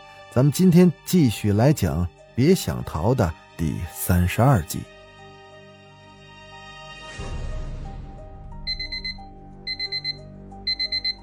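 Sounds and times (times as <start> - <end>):
speech: 0.4 - 4.9
bedside alarm clock ringing: 8.7 - 11.2.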